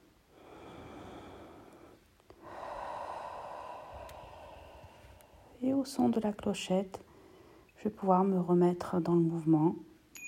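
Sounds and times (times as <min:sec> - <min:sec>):
deep breath: 0:00.3 - 0:05.6, 0:07.1 - 0:07.8
speech: 0:05.6 - 0:07.1, 0:07.8 - 0:09.9.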